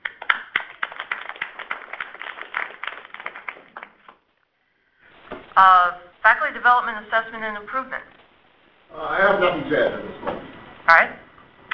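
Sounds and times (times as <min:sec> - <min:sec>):
applause: 0:00.0 - 0:04.3
speech: 0:05.6 - 0:08.2, 0:08.9 - 0:10.3.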